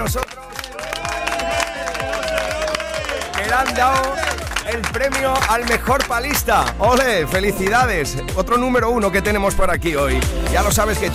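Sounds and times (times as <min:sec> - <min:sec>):
speech: 0:00.0 - 0:00.6, 0:03.5 - 0:11.1
audience applause and cheering: 0:00.0 - 0:06.9.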